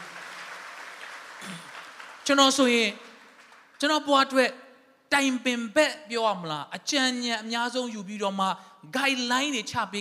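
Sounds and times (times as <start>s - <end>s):
church congregation clapping in praise: 0.0s - 4.1s
speech: 2.3s - 3.1s, 3.8s - 10.0s.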